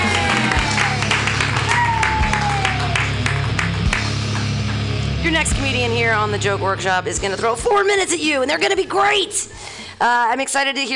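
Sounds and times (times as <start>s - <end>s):
audience cheering: 0.0s - 4.1s
audience clapping: 0.0s - 5.2s
speech: 5.3s - 10.9s.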